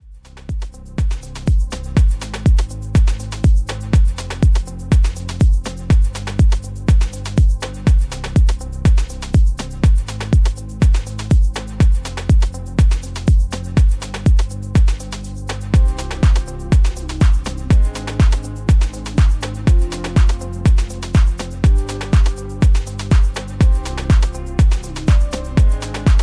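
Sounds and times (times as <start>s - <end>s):
afro house remix music: 0.0s - 26.2s.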